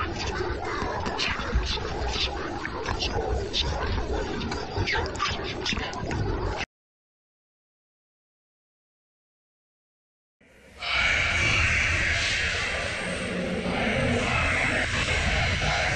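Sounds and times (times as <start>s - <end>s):
eerie horror whispers: 0.0s - 6.6s, 10.5s - 15.9s.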